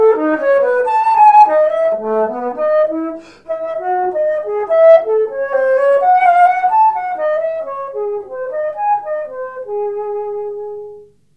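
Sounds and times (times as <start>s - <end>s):
alto flute: 0.0s - 11.2s.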